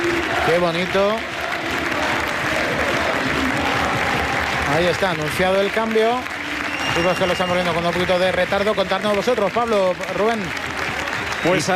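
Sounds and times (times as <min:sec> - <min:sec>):
stadium crowd applauding: 0:00.0 - 0:11.7
speech: 0:00.5 - 0:01.3, 0:04.7 - 0:06.3, 0:06.9 - 0:10.7, 0:11.4 - 0:11.7.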